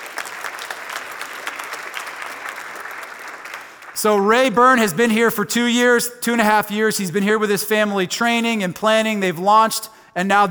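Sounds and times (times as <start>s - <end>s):
audience applause: 0.0s - 4.0s
speech: 4.0s - 10.4s.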